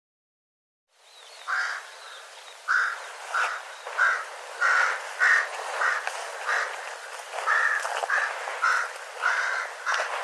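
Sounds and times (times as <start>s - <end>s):
bird giving harsh hoarse crow-like caws: 1.5s - 1.9s, 2.7s - 10.2s.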